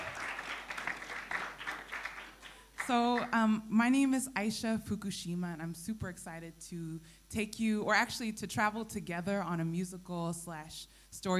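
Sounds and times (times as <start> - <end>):
audience applause at a morning musical storytelling session: 0.0 - 2.9
speech: 2.9 - 11.3.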